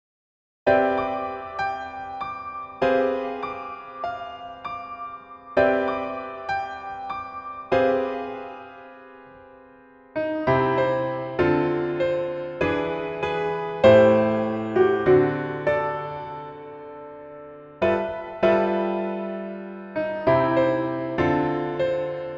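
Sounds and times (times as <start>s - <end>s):
piano melody backing track in female key: 0.7s - 22.3s.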